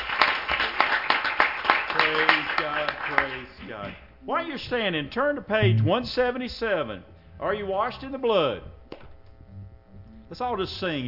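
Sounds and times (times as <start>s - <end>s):
church congregation clapping hands in praise: 0.0s - 4.0s
speech: 2.0s - 8.8s, 10.3s - 11.0s.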